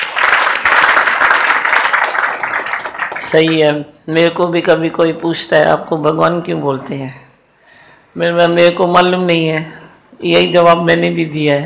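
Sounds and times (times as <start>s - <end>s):
audience applause: 0.0s - 3.3s
speech: 3.3s - 7.2s, 8.2s - 11.6s.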